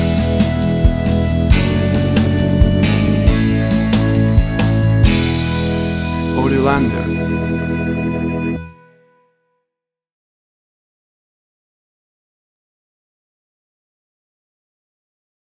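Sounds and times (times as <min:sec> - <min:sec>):
sixties country music: 0:00.0 - 0:08.9.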